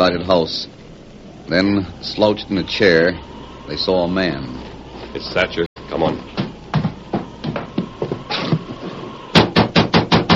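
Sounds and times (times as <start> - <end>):
speech: 0.0 - 0.8, 1.5 - 6.2
soft thumps and shuffling: 6.0 - 9.2
loud knocking on a door: 6.4 - 8.7, 9.3 - 10.3.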